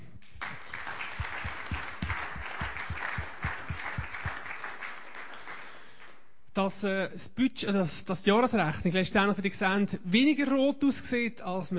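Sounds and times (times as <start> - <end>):
audience applause: 0.4 - 6.1
speech: 6.6 - 11.7.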